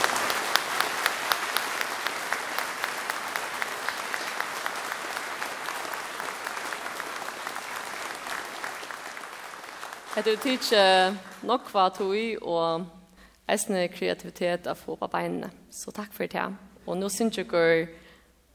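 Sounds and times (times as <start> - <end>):
applause at a dance-band church service in Vágur, Faroe Islands: 0.0 - 12.2
speech: 10.2 - 18.0.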